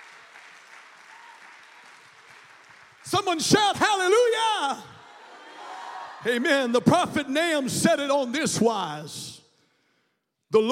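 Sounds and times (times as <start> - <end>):
audience clapping hands: 0.0 - 4.3
speech: 3.0 - 5.0, 6.2 - 9.4.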